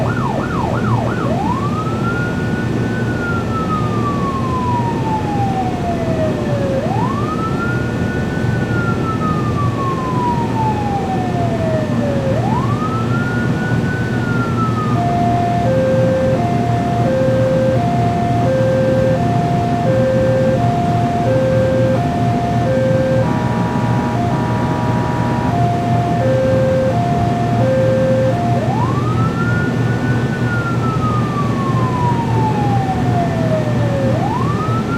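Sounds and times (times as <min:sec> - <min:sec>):
police boat engine starting, driving and shutting off: 0:00.0 - 0:01.8, 0:09.8 - 0:34.9
police boat siren: 0:00.0 - 0:34.9.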